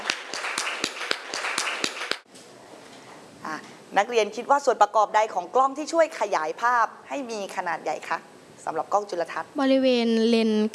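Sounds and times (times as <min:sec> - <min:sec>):
classroom clapping: 0:00.0 - 0:02.3
speech: 0:04.0 - 0:10.7.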